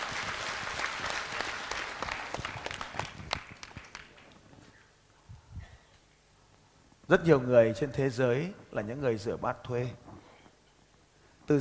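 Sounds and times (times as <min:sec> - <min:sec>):
group applauding: 0:00.0 - 0:04.5
speech: 0:07.1 - 0:10.0.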